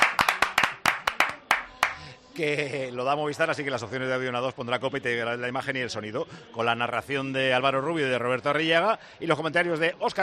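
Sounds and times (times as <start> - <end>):
applause sound effect from sound machine: 0.0 - 2.1
speech: 2.4 - 10.2.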